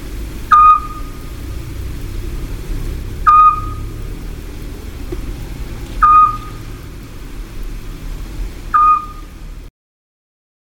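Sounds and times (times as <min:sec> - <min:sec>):
Eurasian scops owl giving a short clear whistled note: 0:00.5 - 0:01.1, 0:06.0 - 0:06.5, 0:08.7 - 0:09.3.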